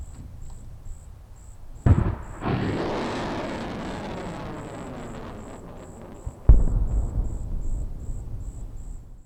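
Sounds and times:
nighttime rocket launch: 1.9s - 9.2s
rocket explosion: 1.9s - 9.2s.

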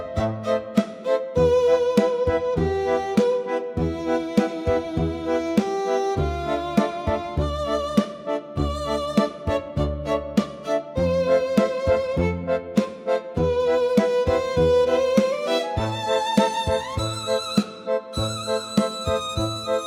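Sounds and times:
dramatic sad emotional meme music: 0.1s - 19.8s.

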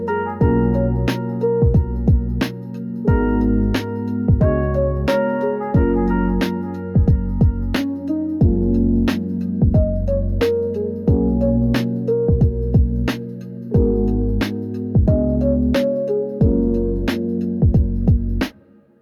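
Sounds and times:
soft pop beat: 0.0s - 18.6s.

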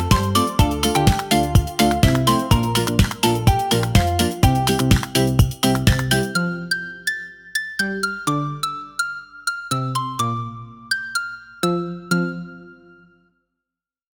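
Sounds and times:
uplifting pop beat: 0.0s - 10.4s.

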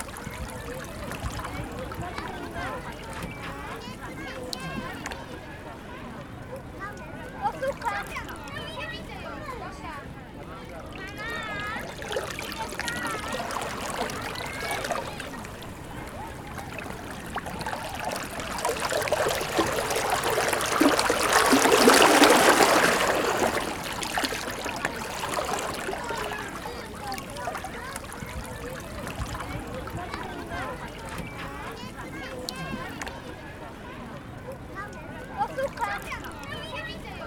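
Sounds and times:
gentle ocean waves: 0.0s - 37.2s
people chattering: 0.0s - 37.2s.

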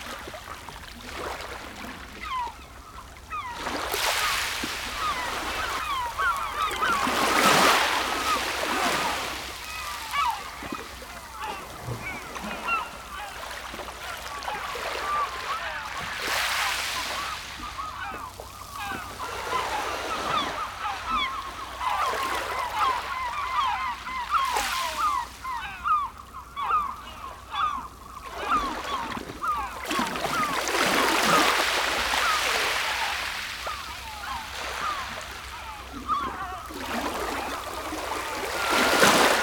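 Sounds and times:
ocean breeze: 0.0s - 39.4s
seagulls calling: 0.1s - 39.4s.

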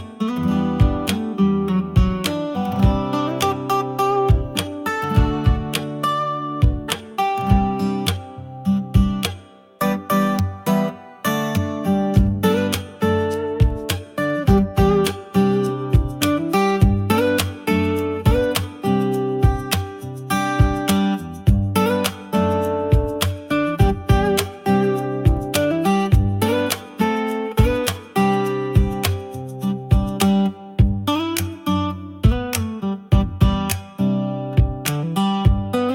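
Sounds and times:
acoustic beat: 0.0s - 35.9s.

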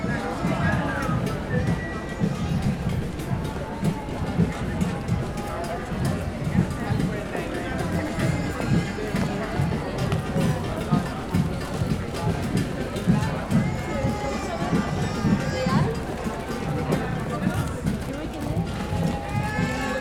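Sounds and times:
busy drummer drumming in a parade: 0.0s - 20.0s
city street ambience: 0.0s - 20.0s.

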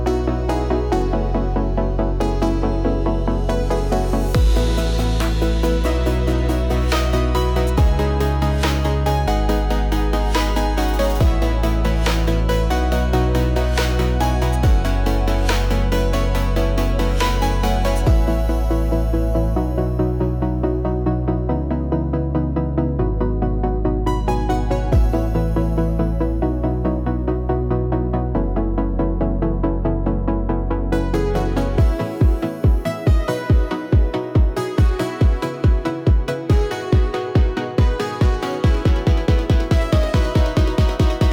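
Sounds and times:
emotional future bass music: 0.0s - 41.3s.

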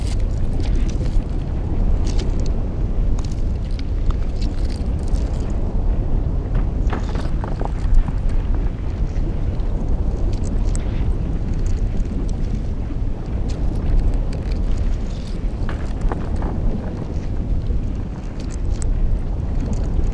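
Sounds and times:
volcanic debris rocks rolling: 0.0s - 20.1s.

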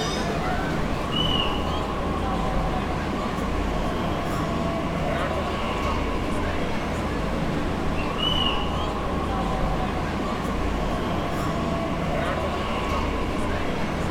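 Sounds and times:
underground metro low industrial hum: 0.0s - 14.0s.

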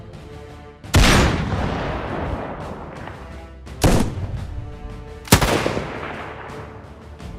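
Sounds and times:
sniper strike sound effect: 0.9s - 3.0s, 3.8s - 4.3s, 5.3s - 6.7s.

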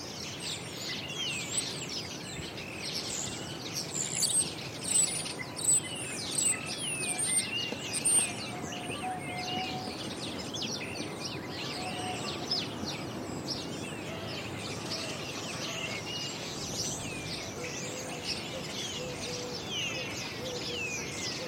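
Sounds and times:
birds in a backyard garden: 0.0s - 21.4s
wind in backyard garden trees: 0.0s - 21.4s.

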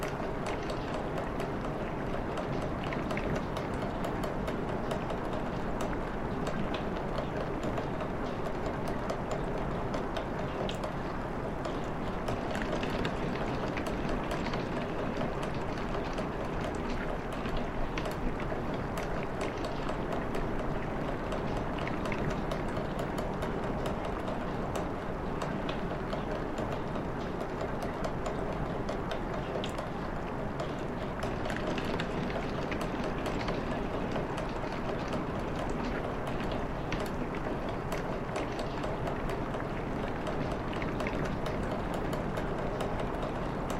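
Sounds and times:
rain on window heard from interior: 0.0s - 43.7s.

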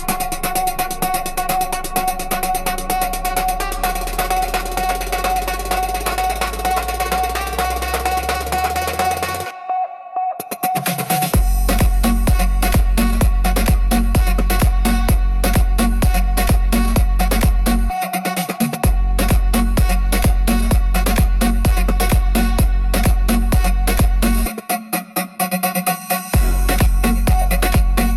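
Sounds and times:
latin beat: 0.0s - 28.1s.

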